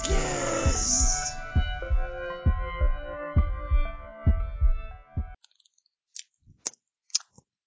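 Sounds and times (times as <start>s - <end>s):
musical jingle with thumping beat: 0.0s - 5.4s.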